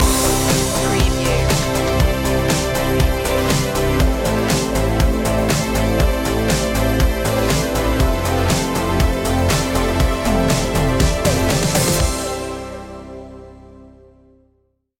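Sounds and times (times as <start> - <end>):
synthwave music: 0.0 - 14.0.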